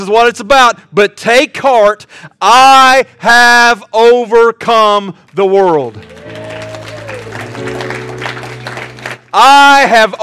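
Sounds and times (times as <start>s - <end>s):
speech: 0.0s - 6.4s, 9.3s - 10.2s
crowd clapping: 5.3s - 10.2s
sustained organ or keyboard tones: 6.0s - 9.5s.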